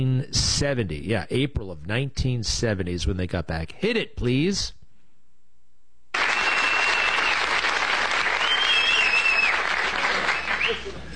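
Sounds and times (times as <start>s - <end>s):
speech: 0.0s - 4.8s
studio audience standing ovation on Johnny Carson's show for the Apollo 13 crew: 6.2s - 11.0s.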